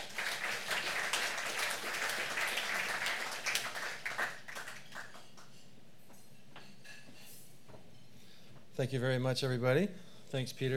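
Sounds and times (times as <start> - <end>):
audience applause at the Hong Kong Foreign Correspondents Club: 0.0 - 5.2
speech: 8.8 - 10.7.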